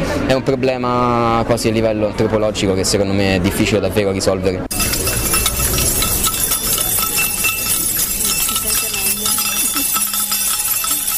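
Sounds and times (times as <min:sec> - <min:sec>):
speech: 0:00.3 - 0:04.8
keys jingling at a student protest sit-in: 0:04.7 - 0:11.1.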